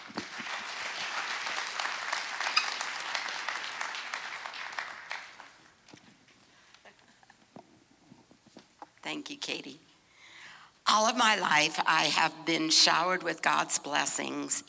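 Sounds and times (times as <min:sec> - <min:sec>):
audience applause welcoming a speaker: 0:00.0 - 0:05.7
speech: 0:09.1 - 0:09.9, 0:10.9 - 0:14.6.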